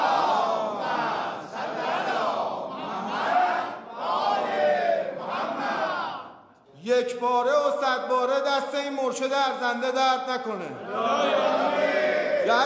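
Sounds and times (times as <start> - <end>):
crowd reciting salawat in unison: 0.0 - 7.0, 10.7 - 12.6
speech: 6.9 - 12.6.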